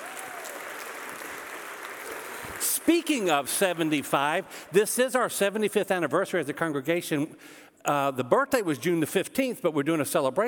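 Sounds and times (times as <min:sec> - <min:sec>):
audience applause: 0:00.0 - 0:04.4
speech: 0:02.6 - 0:10.4.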